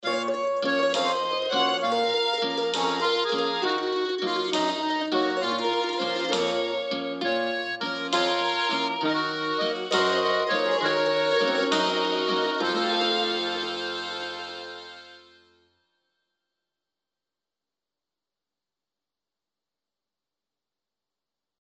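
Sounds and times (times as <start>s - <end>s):
retro dance music: 0.0s - 15.2s.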